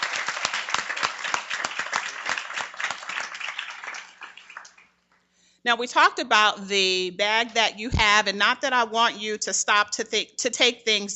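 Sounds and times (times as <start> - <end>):
audience applause: 0.0 - 4.9
speech: 5.6 - 11.1.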